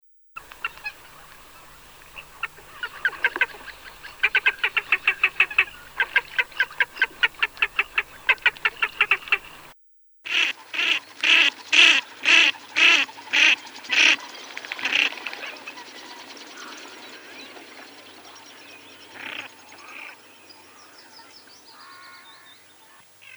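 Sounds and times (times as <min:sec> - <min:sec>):
ferruginous duck giving harsh nasal calls: 0:00.4 - 0:09.7, 0:10.3 - 0:13.5.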